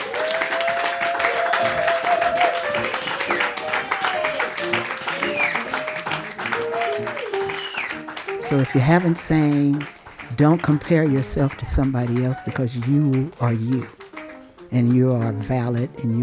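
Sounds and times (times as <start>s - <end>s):
cheers and whoops: 0.0s - 8.0s
audience applause: 0.0s - 15.6s
speech: 8.5s - 14.0s, 14.7s - 16.2s.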